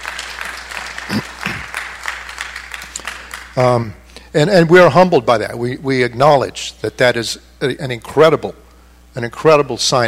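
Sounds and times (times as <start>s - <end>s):
audience applause: 0.0s - 3.6s
speech: 3.6s - 8.6s, 9.2s - 10.0s.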